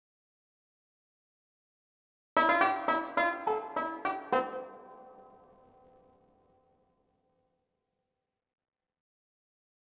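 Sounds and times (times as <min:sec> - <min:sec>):
banjo: 0:02.4 - 0:05.3.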